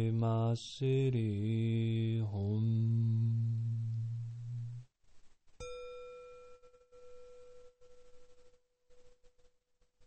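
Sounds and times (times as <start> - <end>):
mantra chanting: 0.0 - 4.9.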